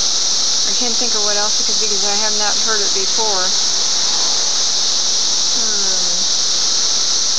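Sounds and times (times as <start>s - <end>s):
cicadas whirring outside: 0.0s - 7.3s
speech: 0.8s - 3.9s.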